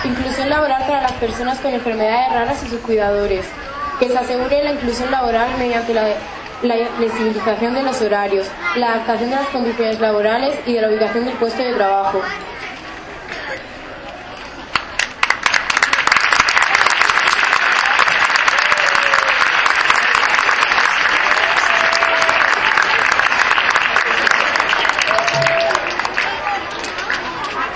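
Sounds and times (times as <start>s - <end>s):
faint crowd chatter: 0.0s - 27.7s
speech: 0.1s - 12.6s
audience applause: 14.7s - 27.7s
people whooping: 16.6s - 26.1s.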